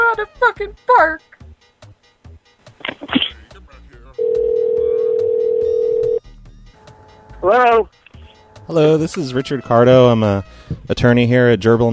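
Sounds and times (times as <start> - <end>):
speech: 0.5 - 1.4, 7.4 - 8.0, 8.7 - 11.9
telephone dialing clicks and beeps: 4.2 - 6.2.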